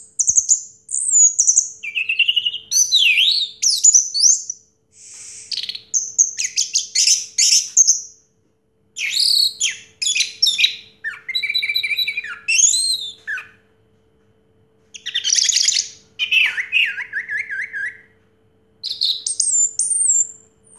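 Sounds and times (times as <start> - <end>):
orange-headed thrush song: 0.0 - 8.2, 9.0 - 13.7, 15.0 - 18.2, 18.8 - 20.7.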